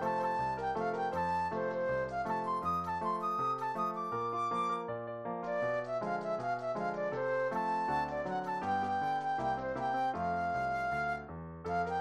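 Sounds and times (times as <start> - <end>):
classical ragtime dance flute solo: 0.0 - 11.9.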